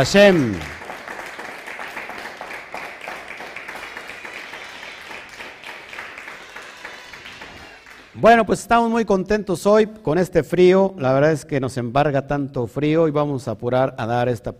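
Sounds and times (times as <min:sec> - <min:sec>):
speech: 0:00.0 - 0:00.8, 0:08.2 - 0:14.5
audience applause: 0:00.0 - 0:08.2.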